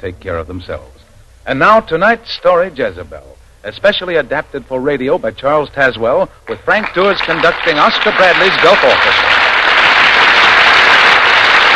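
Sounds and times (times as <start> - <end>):
speech: 0.0 - 9.4
studio audience applause as radio drama stars enter: 6.4 - 11.7.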